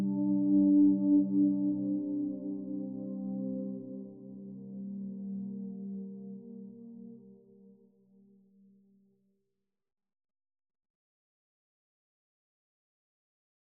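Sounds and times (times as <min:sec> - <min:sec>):
ambient music: 0:00.0 - 0:08.2.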